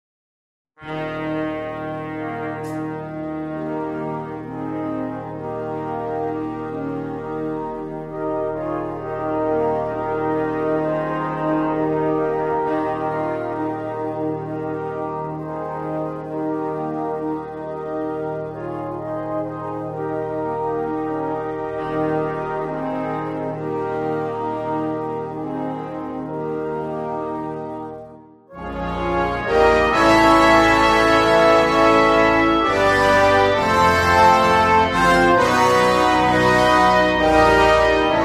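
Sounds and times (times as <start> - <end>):
fanfare: 0.8 - 38.2.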